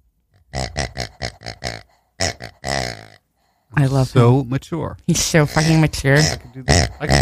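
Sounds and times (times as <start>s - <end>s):
green farting pig toy: 0.4s - 3.3s, 5.5s - 7.1s
speech: 3.8s - 7.1s.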